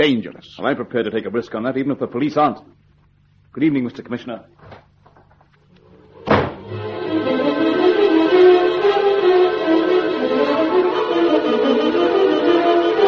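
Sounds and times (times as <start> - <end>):
speech: 0.0 - 2.8, 3.5 - 4.9
tonal music: 5.9 - 13.0
door slamming shut: 6.2 - 6.7.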